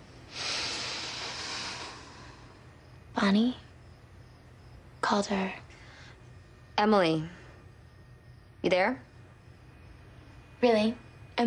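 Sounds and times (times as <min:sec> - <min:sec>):
deep inhalation: 0:00.3 - 0:02.7
speech: 0:03.2 - 0:03.7, 0:05.1 - 0:05.7, 0:06.8 - 0:07.4, 0:08.6 - 0:09.1, 0:10.6 - 0:11.4.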